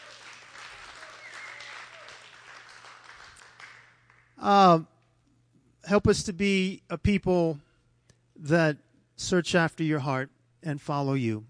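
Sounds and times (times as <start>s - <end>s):
audience applause: 0.0s - 4.3s
speech: 4.4s - 4.9s, 5.9s - 7.6s, 8.4s - 11.4s.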